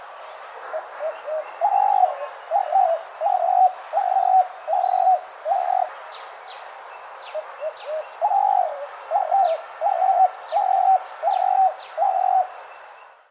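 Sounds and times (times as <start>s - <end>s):
spotted dove calling: 0.7s - 6.0s, 7.2s - 12.6s.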